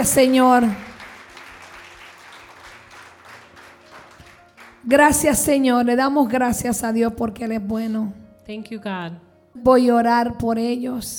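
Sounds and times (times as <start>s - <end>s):
speech: 0.0s - 0.9s, 4.8s - 11.1s
audience applauding: 0.0s - 5.1s.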